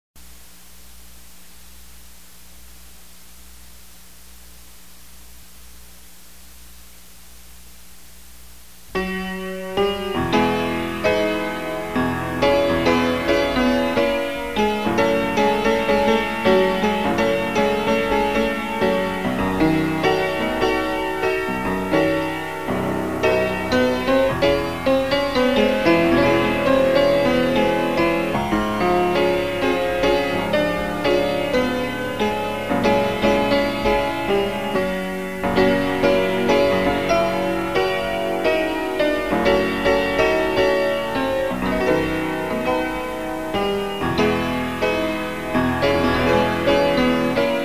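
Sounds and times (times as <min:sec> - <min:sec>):
piano: 0:08.4 - 0:47.6.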